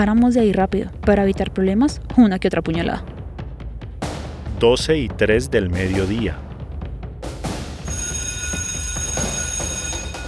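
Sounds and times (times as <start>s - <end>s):
speech: 0.0s - 3.1s, 4.6s - 6.4s
school dismissal bell ringing: 7.9s - 10.2s.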